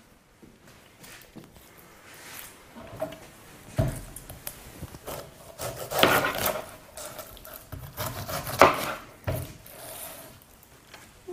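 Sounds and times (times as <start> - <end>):
knife chopping pineapple on a wooden board: 5.0 - 9.6.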